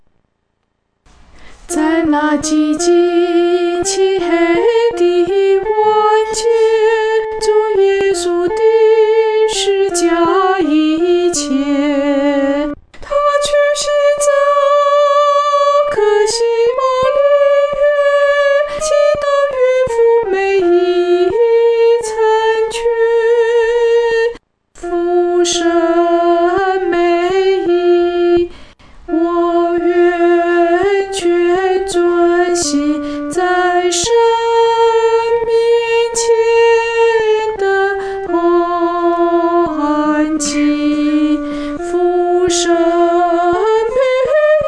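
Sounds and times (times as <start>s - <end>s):
solo singing voice: 1.7s - 44.6s.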